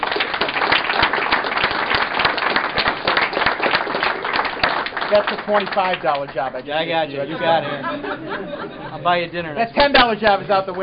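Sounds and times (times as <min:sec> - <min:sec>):
round of applause: 0:00.0 - 0:06.6
speech: 0:05.1 - 0:10.8
laughter: 0:06.9 - 0:10.8.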